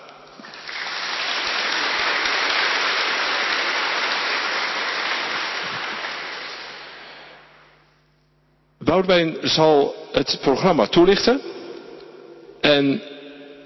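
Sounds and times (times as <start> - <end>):
warm audience applause: 0.0 - 7.5
speech: 8.9 - 11.5, 12.7 - 13.1.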